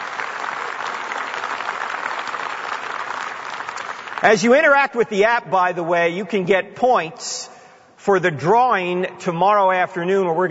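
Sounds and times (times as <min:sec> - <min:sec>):
audience applause: 0:00.0 - 0:04.4
speech: 0:04.2 - 0:10.4.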